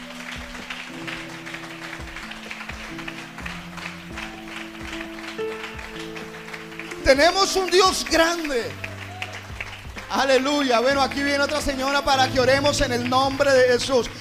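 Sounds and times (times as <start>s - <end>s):
audience applause: 0.0s - 14.2s
speech: 7.1s - 8.8s, 10.1s - 14.2s.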